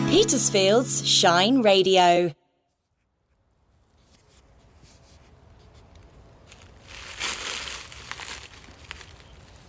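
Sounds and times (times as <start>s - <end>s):
speech: 0.1s - 2.4s
rain falling on dead leaves: 6.5s - 9.6s.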